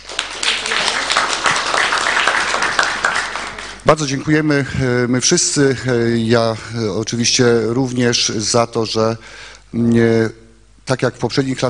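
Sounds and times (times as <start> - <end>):
applause: 0.0 - 4.0
speech: 3.9 - 11.6.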